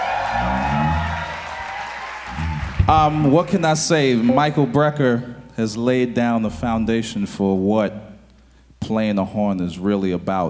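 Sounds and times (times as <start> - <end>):
concert audience applause: 0.0 - 3.6
concert audience cheering: 0.0 - 5.0
speech: 2.9 - 8.1, 8.9 - 10.4.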